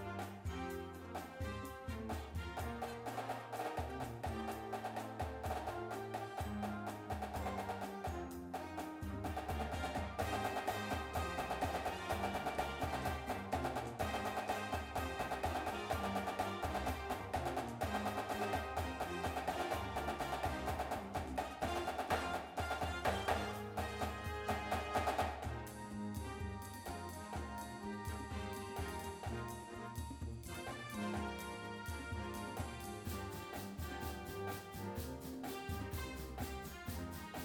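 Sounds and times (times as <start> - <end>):
music: 0.0 - 37.4
snare drum: 0.0 - 37.4.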